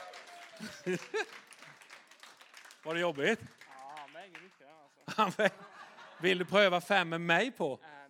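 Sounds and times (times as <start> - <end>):
voices whooping: 0.0 - 1.2
audience applause: 0.0 - 5.4
laughter: 0.3 - 1.8, 5.0 - 6.7
speech: 0.6 - 1.4, 2.8 - 3.6, 4.3 - 8.0.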